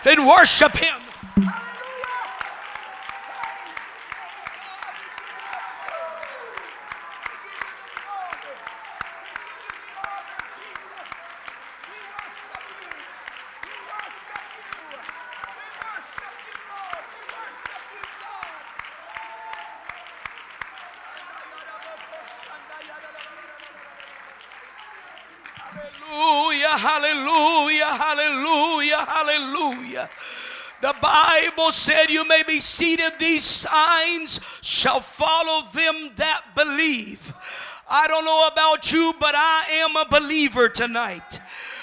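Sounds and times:
speech: 0.0 - 1.5, 31.0 - 41.4
audience clapping: 0.0 - 33.0.

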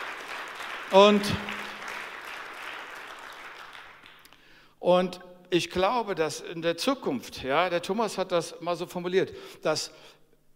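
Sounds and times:
crowd applauding: 0.0 - 4.3
speech: 0.9 - 1.6, 4.8 - 10.2.

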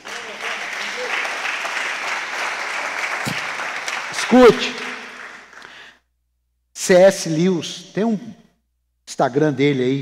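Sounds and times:
audience applause: 0.0 - 5.8
speech: 4.3 - 4.8, 6.9 - 8.4, 9.2 - 10.0.

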